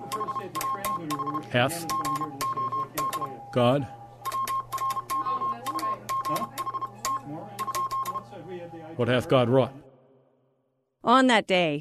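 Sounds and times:
Morse code telegraph message beeping in short and long pulses: 0.0 - 8.4
speech: 0.4 - 2.4, 3.6 - 4.0, 9.0 - 9.8, 11.0 - 11.7.

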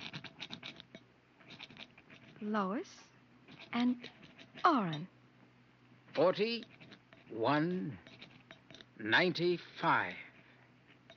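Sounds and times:
rock scratching on a lead door: 0.0 - 2.4, 3.5 - 5.0, 6.1 - 9.0
speech: 2.4 - 3.1, 3.7 - 5.2, 6.2 - 6.7, 7.3 - 8.1, 9.0 - 10.2.

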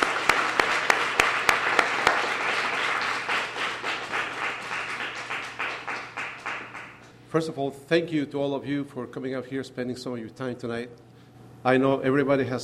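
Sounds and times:
crowd applauding for a poet: 0.0 - 7.1
speech: 7.3 - 12.6.

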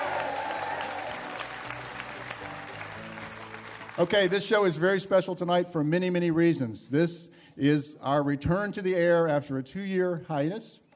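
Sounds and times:
studio audience applause in a museum stage studio in Pensacola: 0.0 - 4.7
speech: 4.0 - 10.8.

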